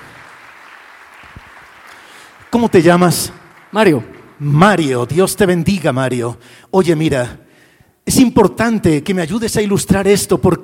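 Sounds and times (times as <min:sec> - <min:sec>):
audience clapping: 0:00.0 - 0:05.6
speech: 0:02.5 - 0:07.4, 0:08.0 - 0:10.6.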